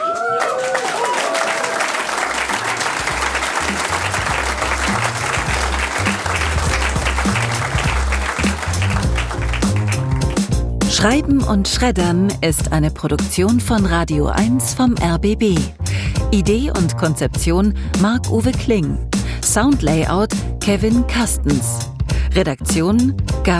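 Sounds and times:
audience applause: 0:00.0 - 0:10.6
speech: 0:11.0 - 0:23.5.

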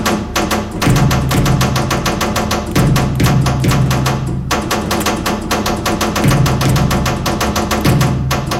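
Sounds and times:
Morse code metallic tapping in a sound installation: 0:00.0 - 0:08.5.

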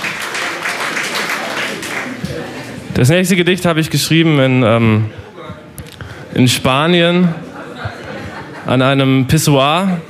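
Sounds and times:
audience applause after a poem at a poetry reading: 0:00.0 - 0:02.7
speech: 0:03.0 - 0:05.2, 0:06.3 - 0:07.4, 0:08.7 - 0:10.0
laughter: 0:07.0 - 0:09.3.

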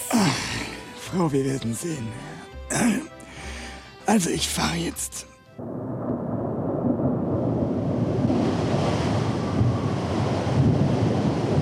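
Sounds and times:
speech: 0:01.1 - 0:03.2, 0:04.1 - 0:05.8
gusting wind buffeting the microphone: 0:05.6 - 0:11.6
stormy sea crashing surf: 0:06.9 - 0:11.6.

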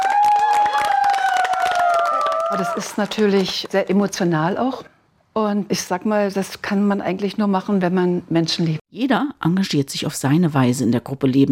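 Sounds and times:
audience applause for a choir leader: 0:00.0 - 0:03.8
speech: 0:02.5 - 0:11.5.

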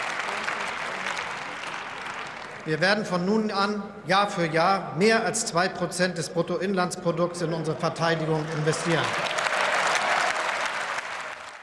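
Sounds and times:
applause in parliament: 0:00.0 - 0:02.9, 0:08.1 - 0:11.6
speech: 0:02.6 - 0:09.3.

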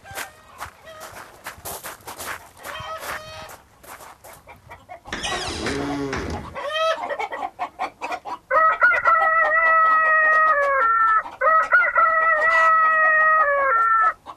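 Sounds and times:
clucking and squawks: 0:02.4 - 0:03.6, 0:04.3 - 0:14.3
harsh noise burst: 0:05.1 - 0:06.6.

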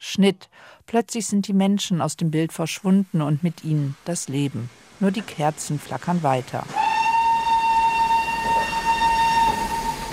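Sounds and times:
speech: 0:00.1 - 0:06.8
low rumble of the train: 0:03.4 - 0:10.1
steam locomotive whistle: 0:06.7 - 0:10.1.

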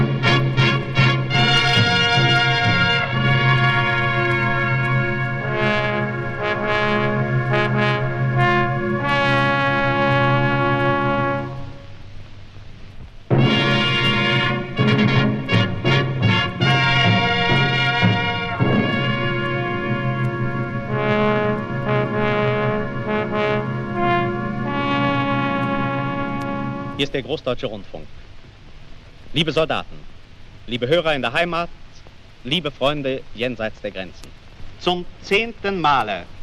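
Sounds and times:
brass fanfare opening a radio request concert: 0:00.0 - 0:12.0, 0:13.3 - 0:27.3
speech: 0:27.1 - 0:28.2, 0:29.3 - 0:30.1, 0:30.7 - 0:31.8, 0:32.4 - 0:36.4.

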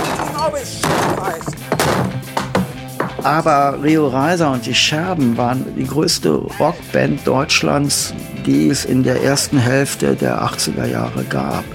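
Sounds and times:
wooden table being smashed: 0:00.0 - 0:03.3
speech: 0:00.4 - 0:02.4, 0:03.2 - 0:11.7.

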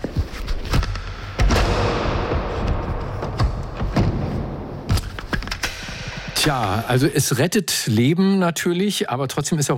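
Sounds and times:
knocks and thuds of a medical machine being closed: 0:00.7 - 0:06.6
speech: 0:06.4 - 0:09.7.

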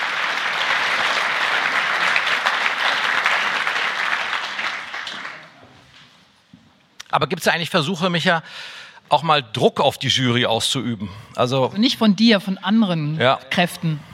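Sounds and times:
crowd applauding: 0:00.0 - 0:05.8
speech: 0:07.2 - 0:14.1.

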